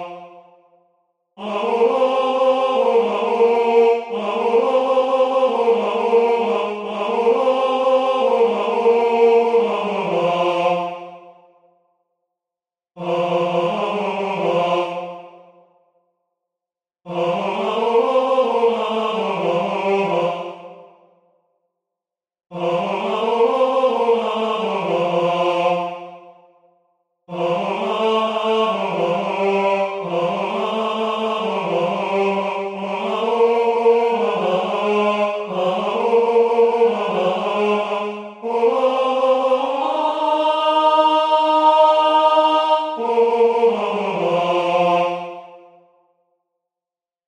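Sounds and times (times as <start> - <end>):
tenor singing: 1.4 - 11.1, 13.0 - 15.2, 17.1 - 20.8, 22.5 - 26.0, 27.3 - 45.6.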